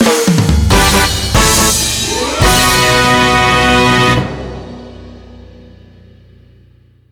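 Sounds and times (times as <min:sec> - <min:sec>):
fanfare: 0:00.7 - 0:05.3.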